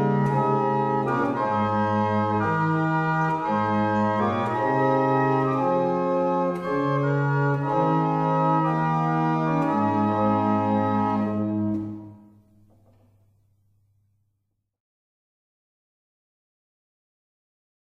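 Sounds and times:
barrel organs: 0.0s - 12.4s.

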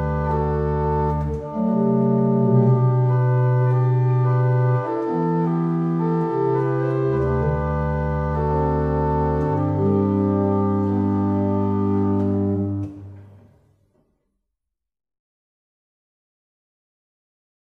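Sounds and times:
barrel organs playing in Abingdon: 0.0s - 13.6s.

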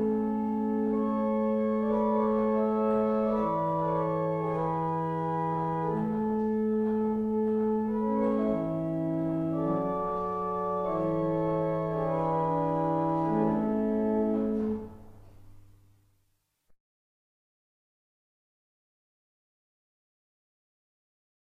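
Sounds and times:
barrel organs: 0.0s - 15.7s.

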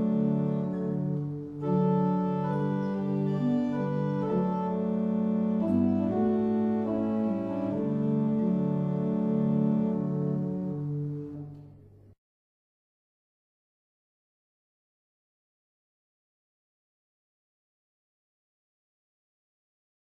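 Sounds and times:
barrel organs: 0.0s - 11.5s.

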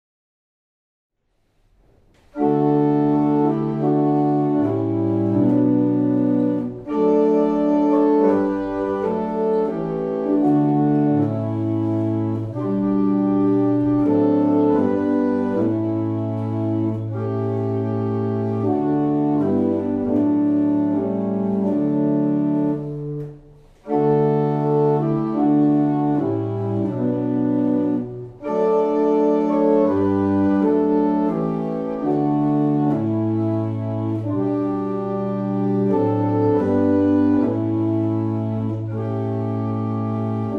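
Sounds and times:
barrel organ playing a double chant: 2.3s - 40.5s.

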